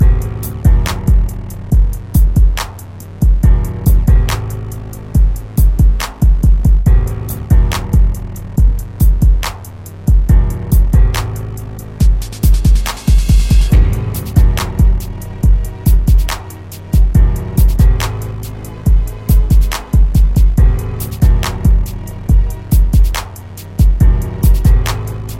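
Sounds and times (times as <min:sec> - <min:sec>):
hip hop beat: 0:00.0 - 0:25.3.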